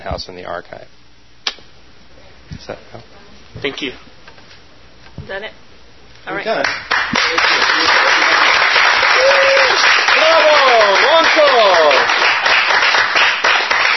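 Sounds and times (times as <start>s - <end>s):
speech: 0.0s - 1.0s, 2.5s - 4.1s, 5.2s - 5.6s, 6.2s - 8.1s
crowd applauding: 6.6s - 13.9s
cheers and whistles: 9.0s - 12.1s.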